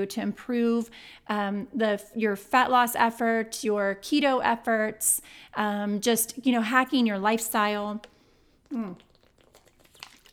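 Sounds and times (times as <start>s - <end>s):
speech: 0.0s - 8.1s, 8.7s - 9.1s
person drinking water: 8.0s - 10.3s.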